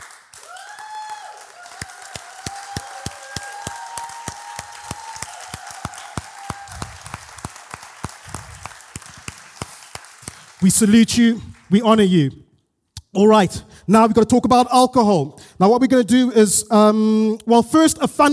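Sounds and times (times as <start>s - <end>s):
audience giving a round of applause: 0.0s - 11.8s
speech: 10.6s - 12.4s, 13.2s - 18.3s.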